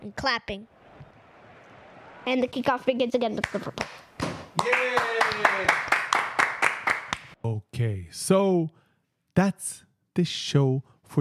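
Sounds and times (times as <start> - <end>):
speech: 0.0 - 0.8, 2.2 - 4.0, 4.6 - 5.9, 7.4 - 8.8, 9.4 - 11.1
hand claps: 3.4 - 7.4.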